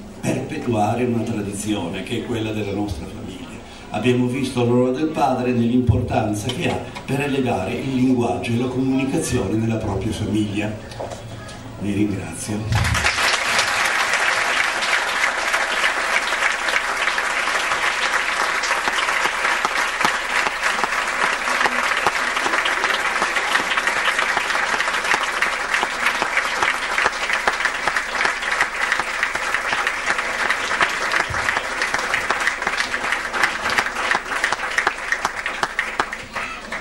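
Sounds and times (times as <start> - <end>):
speech: 0.5 - 11.2, 11.8 - 13.0
audience applause after a lecture on the father's role: 12.7 - 36.8.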